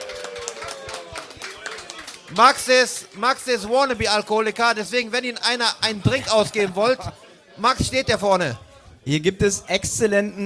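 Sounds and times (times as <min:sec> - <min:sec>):
crowd clapping steadily: 0:00.0 - 0:04.3
speech: 0:02.3 - 0:10.4.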